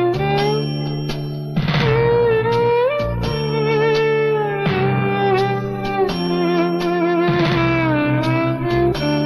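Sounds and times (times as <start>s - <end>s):
female ringtone: 0.1s - 9.2s.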